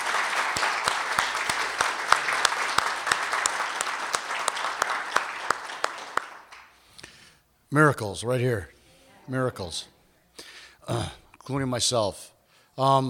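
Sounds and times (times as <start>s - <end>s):
crowd applauding: 0.0s - 6.8s
speech: 7.7s - 9.9s, 10.9s - 13.0s.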